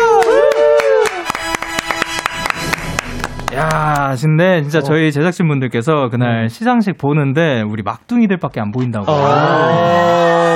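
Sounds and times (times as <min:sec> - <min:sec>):
clapping: 0:00.0 - 0:03.9
speech: 0:03.6 - 0:10.4.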